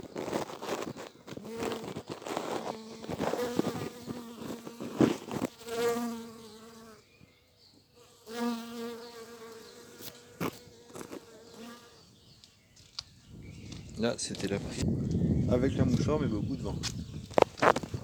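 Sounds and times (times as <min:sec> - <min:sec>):
clicks and rustles: 0:00.0 - 0:05.6, 0:16.8 - 0:18.0
bee flight buzz: 0:00.0 - 0:07.0, 0:08.0 - 0:12.3
speech: 0:14.0 - 0:17.5.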